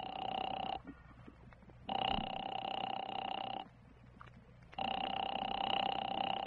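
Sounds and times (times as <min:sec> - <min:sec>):
telephone ringing: 0:00.0 - 0:00.8, 0:01.9 - 0:03.7, 0:04.8 - 0:06.4.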